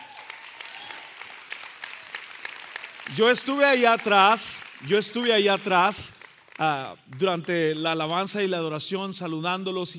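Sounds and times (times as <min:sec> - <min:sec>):
audience applause: 0:00.0 - 0:07.5
speech: 0:03.1 - 0:09.9.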